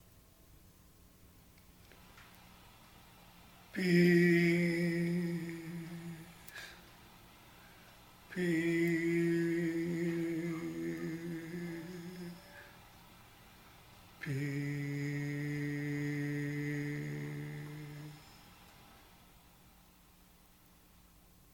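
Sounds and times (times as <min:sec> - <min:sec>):
peace chant: 0:03.6 - 0:06.8, 0:08.3 - 0:12.9, 0:14.2 - 0:18.6.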